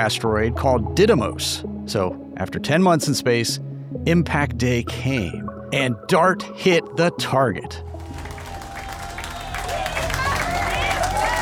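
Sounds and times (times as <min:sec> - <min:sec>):
speech: 0:00.0 - 0:07.9
crowd cheering and clapping as the DART spacecraft's signal is lost at impact: 0:07.9 - 0:11.4
whooping voices: 0:08.0 - 0:11.4.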